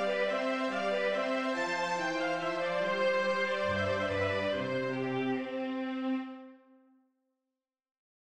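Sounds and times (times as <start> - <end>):
full ensemble playing: 0.1 - 5.9.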